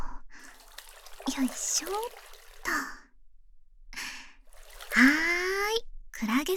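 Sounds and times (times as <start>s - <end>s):
binaural bath sound effects: 0.4s - 3.0s, 4.5s - 6.5s.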